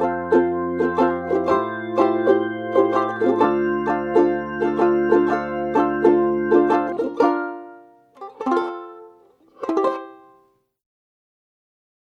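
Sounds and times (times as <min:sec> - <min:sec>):
ukulele: 0:00.0 - 0:10.6.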